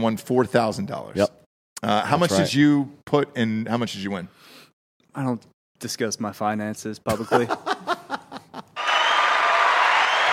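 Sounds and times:
speech: 0:00.0 - 0:04.6, 0:05.2 - 0:07.7
laughter: 0:07.1 - 0:09.0
applause for a big betting win: 0:08.8 - 0:10.3.

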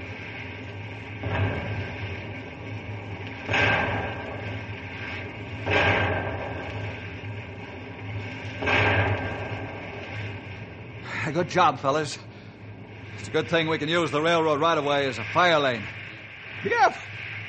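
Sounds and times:
dynamite blasts: 0:00.0 - 0:17.4
low hum: 0:00.0 - 0:17.4
speech: 0:11.3 - 0:12.3, 0:13.2 - 0:16.0, 0:16.6 - 0:17.4.

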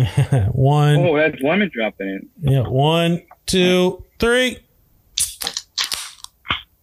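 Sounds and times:
speech: 0:00.0 - 0:04.6
beer can cracking open: 0:05.2 - 0:06.5.

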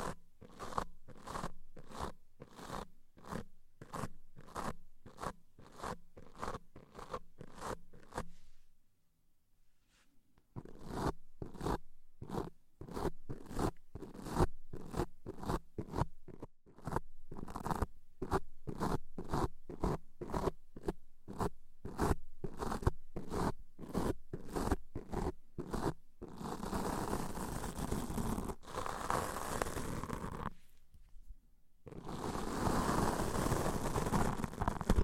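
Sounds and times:
deep ear cleaning scratchy strokes: 0:00.0 - 0:08.4, 0:10.6 - 0:31.2, 0:31.9 - 0:35.0.

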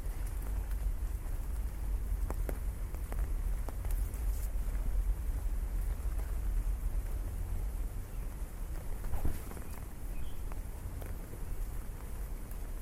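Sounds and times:
rain pattering on an umbrella during a city walk: 0:00.0 - 0:12.8.

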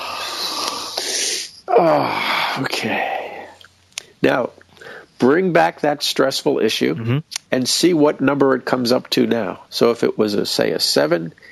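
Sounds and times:
person drawing a deep breath during a guided stress-relief stretch: 0:00.0 - 0:02.6
speech: 0:01.8 - 0:03.2, 0:04.2 - 0:11.5.

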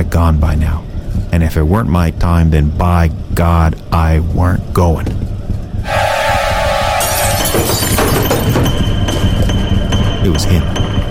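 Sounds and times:
speech: 0:00.2 - 0:05.2, 0:10.3 - 0:10.8
steady ringing tone: 0:05.8 - 0:11.0
window glass pane shattering: 0:07.0 - 0:08.8.

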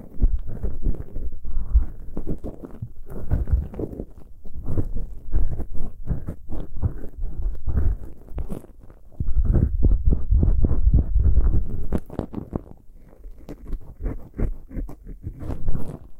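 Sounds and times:
low muffled heartbeat simulation thumps: 0:00.0 - 0:02.1, 0:02.8 - 0:03.9, 0:04.6 - 0:08.2, 0:09.1 - 0:12.1
scratchy ear picking crackles: 0:00.0 - 0:13.9.

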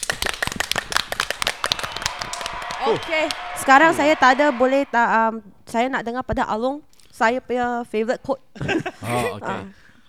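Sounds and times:
applause for frontline healthcare workers: 0:00.0 - 0:05.2, 0:09.0 - 0:09.6
speech: 0:02.8 - 0:09.8
laughter: 0:08.6 - 0:09.8.

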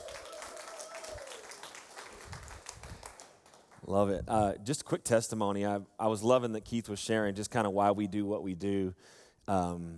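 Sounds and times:
audience applause: 0:00.0 - 0:03.8
speech: 0:03.9 - 0:09.9.

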